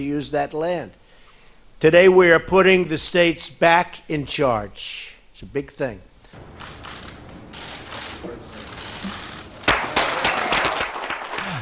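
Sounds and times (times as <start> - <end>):
speech: 0.0 - 1.0, 1.8 - 6.8
audience applause: 6.4 - 11.6.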